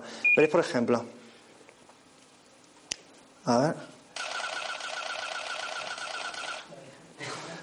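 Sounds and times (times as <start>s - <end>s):
speech: 0.4s - 1.2s, 3.4s - 3.9s
camera shutter firing in burst mode: 4.2s - 6.7s.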